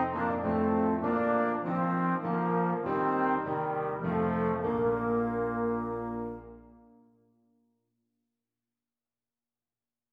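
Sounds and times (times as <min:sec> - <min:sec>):
trombone duet playing a Christmas carol: 0:00.0 - 0:06.8.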